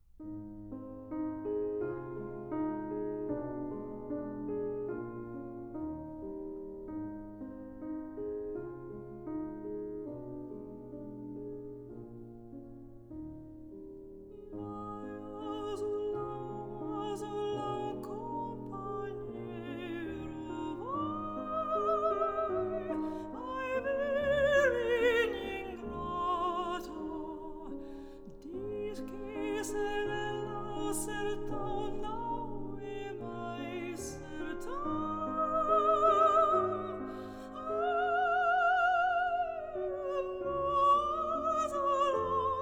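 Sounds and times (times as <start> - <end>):
piano: 0.0 - 42.6
voice: 14.6 - 27.8, 28.4 - 42.6.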